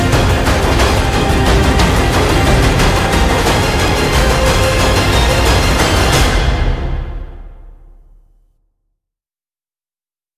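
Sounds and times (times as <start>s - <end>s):
pounding taiko drum percussion: 0.0s - 7.6s.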